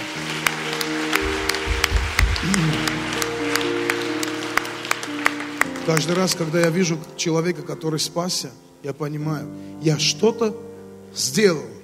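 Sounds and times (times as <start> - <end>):
audience applause: 0.0 - 7.0
speech: 2.4 - 2.8, 5.9 - 11.8.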